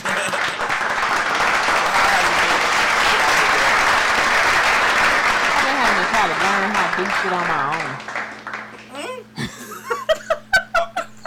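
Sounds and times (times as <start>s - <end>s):
laughter: 0.0s - 0.9s, 9.4s - 11.2s
audience clapping: 0.0s - 9.4s
speech: 7.0s - 8.1s.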